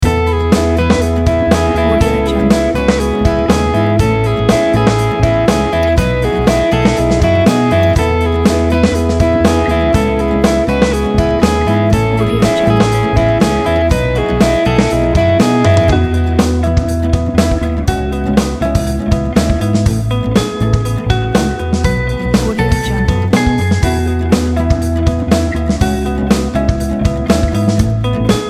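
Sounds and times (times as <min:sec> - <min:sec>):
corporate pop rock drive music: 0:00.0 - 0:28.4.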